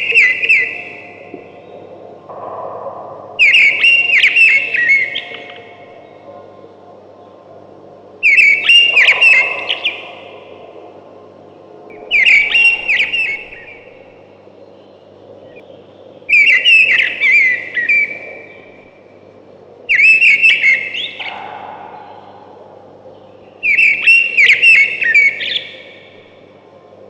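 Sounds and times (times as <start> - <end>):
thrush singing loud whistled phrases: 0.0 - 1.7, 3.4 - 6.1, 8.2 - 10.4, 12.0 - 14.2, 16.3 - 18.6, 19.9 - 26.3.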